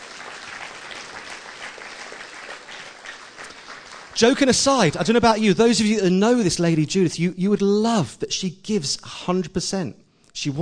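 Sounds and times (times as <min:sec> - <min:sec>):
applause: 0:00.0 - 0:05.0
speech: 0:04.2 - 0:10.6.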